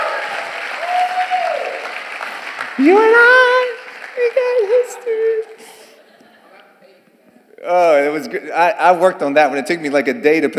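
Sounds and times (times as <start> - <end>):
church congregation applauding: 0.0 - 5.8
speech: 2.8 - 3.4, 7.6 - 10.5.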